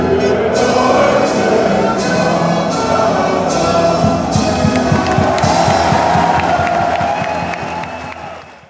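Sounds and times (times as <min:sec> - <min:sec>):
national anthem: 0:00.0 - 0:08.6.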